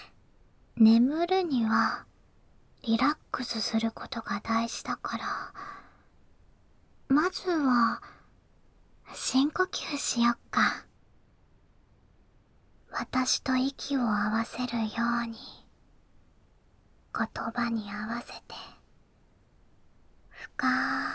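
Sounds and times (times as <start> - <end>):
ASMR whispering: 0.9 - 2.1, 2.8 - 5.5, 9.0 - 10.9, 12.9 - 15.7, 17.1 - 18.9, 20.3 - 21.1.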